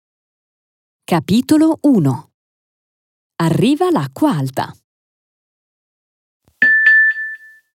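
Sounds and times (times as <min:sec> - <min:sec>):
speech: 0:01.1 - 0:02.3, 0:03.4 - 0:04.8
mobile phone text message alert chimes: 0:06.6 - 0:07.6.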